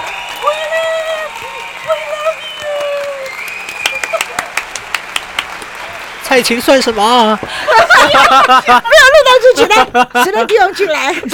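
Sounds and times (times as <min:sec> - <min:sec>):
scattered handclaps from a small audience: 0:00.0 - 0:06.2
cheering voices: 0:00.0 - 0:09.8
speech: 0:06.4 - 0:11.3.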